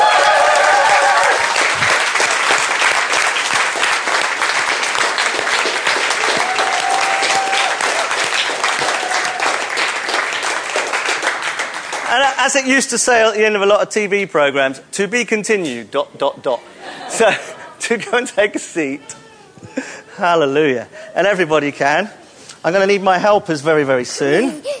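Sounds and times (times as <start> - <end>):
people cheering and whistling: 0.0 - 1.5, 6.3 - 8.2, 8.8 - 9.6
audience applause: 0.0 - 12.4
speech: 12.4 - 24.7.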